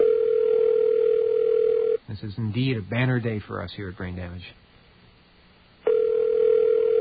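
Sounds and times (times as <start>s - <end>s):
telephone ringing: 0.0s - 2.0s, 5.9s - 6.9s
speech: 2.2s - 4.6s.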